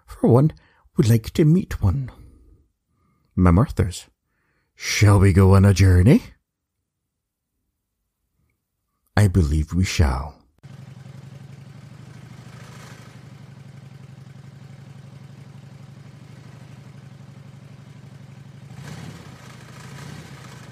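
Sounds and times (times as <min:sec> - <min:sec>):
speech: 0:00.2 - 0:02.2, 0:03.4 - 0:04.1, 0:04.8 - 0:06.4, 0:09.2 - 0:10.8
motorcycle engine idling: 0:10.6 - 0:20.7.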